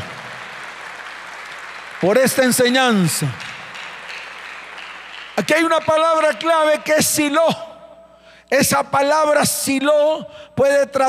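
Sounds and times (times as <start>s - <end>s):
audience applause: 0.0s - 7.2s
speech: 2.0s - 3.5s, 5.4s - 7.6s, 8.5s - 11.0s.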